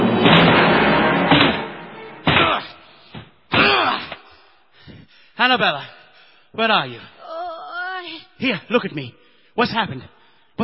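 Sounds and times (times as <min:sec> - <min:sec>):
door being broken down: 0:00.2 - 0:03.9
speech: 0:05.4 - 0:07.2, 0:08.4 - 0:10.6.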